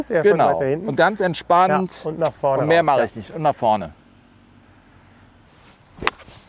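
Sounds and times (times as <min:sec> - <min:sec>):
speech: 0:00.0 - 0:04.0
golf 7-iron swing swish: 0:05.5 - 0:06.4
golf 7-iron striking the ball: 0:06.0 - 0:06.3.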